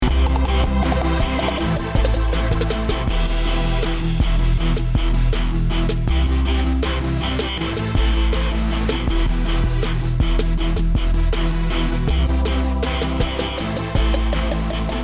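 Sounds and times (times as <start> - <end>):
remix music: 0.0 - 15.0.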